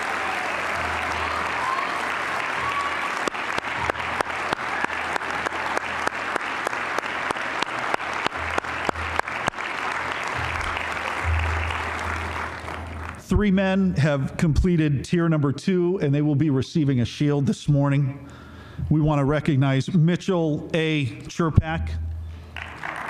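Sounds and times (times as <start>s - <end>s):
audience applause welcoming fifteen program graduates: 0.0s - 13.2s, 22.5s - 23.0s
speech: 13.4s - 22.0s.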